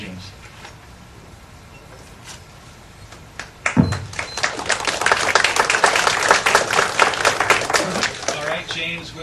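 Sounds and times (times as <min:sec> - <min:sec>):
audience applause: 0:03.6 - 0:08.9.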